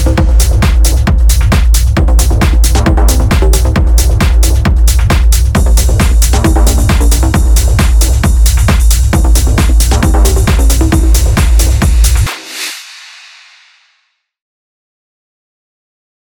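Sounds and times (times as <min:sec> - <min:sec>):
techno music: 0:00.0 - 0:12.8.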